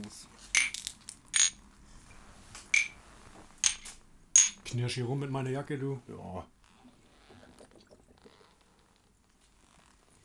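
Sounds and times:
glasses clinking in a toast: 0.6 - 1.6, 2.7 - 3.0, 3.6 - 4.7
speech: 4.7 - 6.6.

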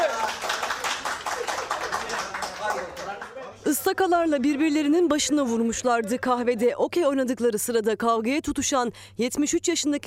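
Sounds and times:
applause sound effect: 0.0 - 3.4
speech: 3.7 - 10.0.

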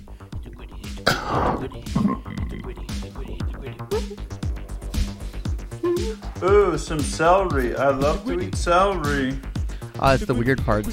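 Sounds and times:
burp heard close to microphone: 1.0 - 2.8
speech: 1.2 - 4.2, 6.4 - 10.9.

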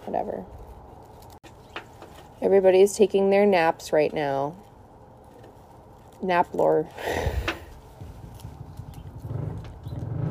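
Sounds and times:
speech: 0.1 - 0.6, 2.4 - 4.6, 6.2 - 7.4
motorcycle engine revving: 8.3 - 10.2.

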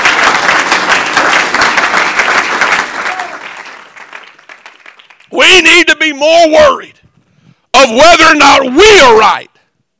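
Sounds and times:
audience clapping hands: 0.0 - 5.6
speech: 5.4 - 7.0, 7.8 - 9.5.

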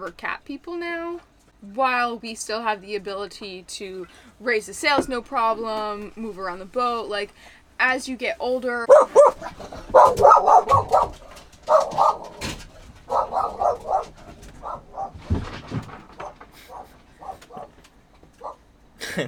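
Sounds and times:
speech: 0.0 - 12.5
dog barking excitedly at pelicans: 8.9 - 15.4, 16.2 - 17.8, 18.4 - 18.6.

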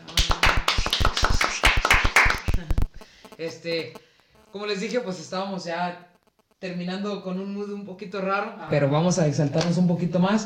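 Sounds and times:
light clapping from a small group: 0.0 - 2.6
speech: 3.4 - 10.4.

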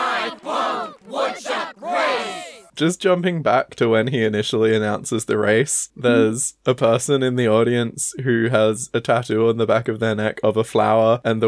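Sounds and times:
crowd chanting: 0.0 - 2.7
speech: 2.8 - 11.4.

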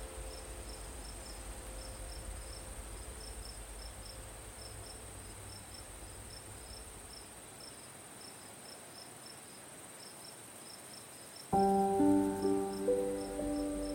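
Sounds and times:
gentle piano notes: 0.0 - 5.8, 11.5 - 13.9
crickets chirping: 0.0 - 13.9
faint high insect whine: 0.0 - 13.9.

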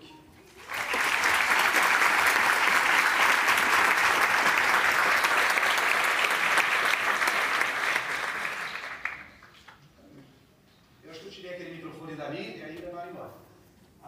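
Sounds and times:
audience applause: 0.5 - 9.5.

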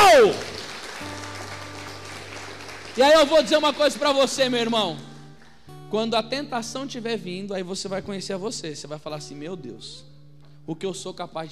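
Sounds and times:
audience applauding: 0.0 - 4.7
speech: 3.0 - 5.1, 5.9 - 11.5.

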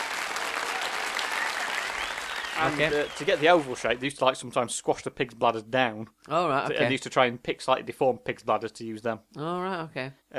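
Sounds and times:
applause sound effect: 0.0 - 4.3
speech: 2.6 - 10.3.

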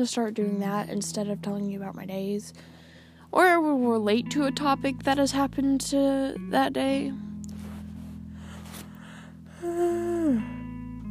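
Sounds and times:
speech: 0.0 - 7.3
person yawning: 9.5 - 10.6.

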